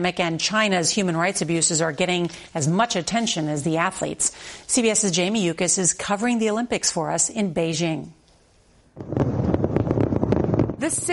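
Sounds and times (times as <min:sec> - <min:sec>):
speech: 0:00.0 - 0:08.2, 0:09.0 - 0:09.3, 0:10.8 - 0:11.1
fireworks display: 0:09.0 - 0:11.1.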